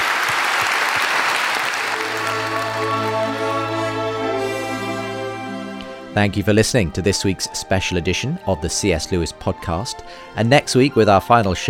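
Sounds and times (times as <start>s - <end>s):
audience applause: 0.0s - 5.3s
speech: 6.2s - 11.6s.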